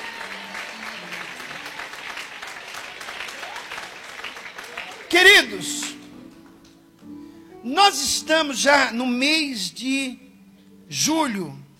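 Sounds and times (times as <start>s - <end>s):
audience clapping: 0.0s - 6.8s
speech: 5.1s - 5.8s, 7.7s - 10.2s, 10.9s - 11.6s.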